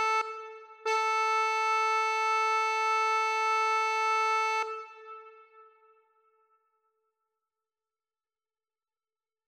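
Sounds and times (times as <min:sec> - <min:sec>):
accordion: 0:00.0 - 0:05.1.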